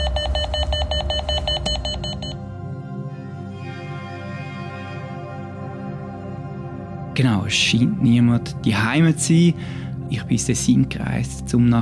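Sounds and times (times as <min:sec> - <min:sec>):
doorbell ringing: 0:00.0 - 0:02.4
speech: 0:07.2 - 0:11.8.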